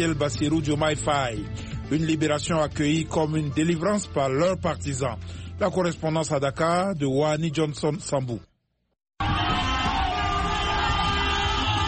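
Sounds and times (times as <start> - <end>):
speech: 0.0 - 8.5
car horns blaring: 9.2 - 11.8
crowd cheering and shouting: 9.2 - 11.8.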